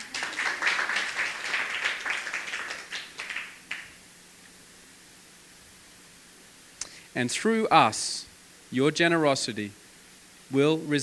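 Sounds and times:
audience clapping: 0.0 - 4.0
speech: 7.2 - 9.8, 10.5 - 11.0.

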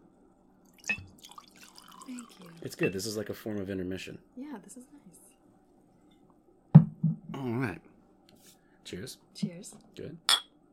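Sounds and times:
quiet hum: 0.0 - 10.7
drink poured into a glass: 0.7 - 3.0
speech: 2.1 - 5.3, 7.4 - 7.9, 8.9 - 10.4.

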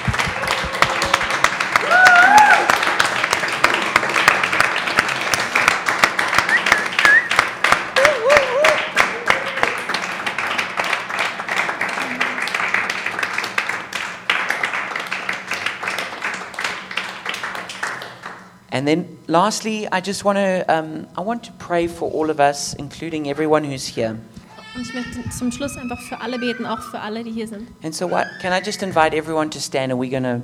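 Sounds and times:
congregation applause: 0.0 - 18.5
speech: 18.8 - 30.4.

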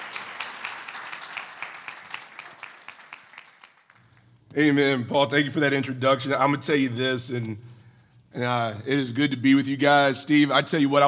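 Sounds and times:
audience clapping: 0.0 - 4.3
speech: 4.5 - 7.7, 8.4 - 11.0.

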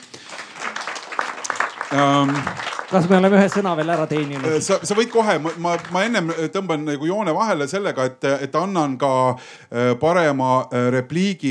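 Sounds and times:
audience applause: 0.0 - 6.8
speech: 1.9 - 11.5.

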